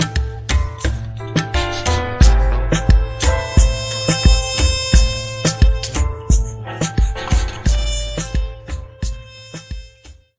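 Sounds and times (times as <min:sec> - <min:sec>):
vocal remix: 0:01.3 - 0:09.2.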